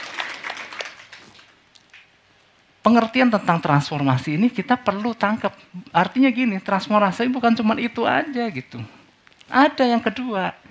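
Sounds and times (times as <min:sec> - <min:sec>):
audience applause: 0:00.0 - 0:01.6
speech: 0:02.8 - 0:10.6.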